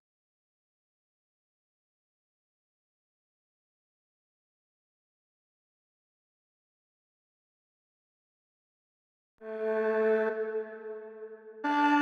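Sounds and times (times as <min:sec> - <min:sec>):
133 BPM A minor drill violin melody stem: 0:09.5 - 0:11.9.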